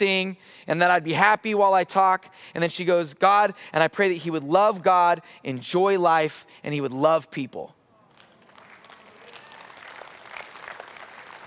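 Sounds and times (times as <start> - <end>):
speech: 0.0 - 7.8
audience clapping: 8.1 - 11.4.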